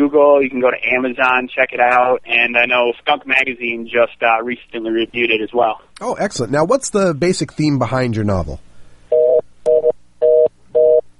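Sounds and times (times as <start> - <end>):
speech: 0.1 - 8.7
telephone line tone beeping after a dropped connection: 9.1 - 11.1.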